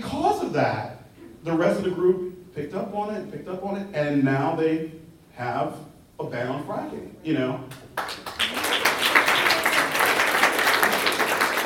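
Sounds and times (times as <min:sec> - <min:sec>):
speech: 0:00.5 - 0:08.3
audience applause: 0:08.0 - 0:11.6.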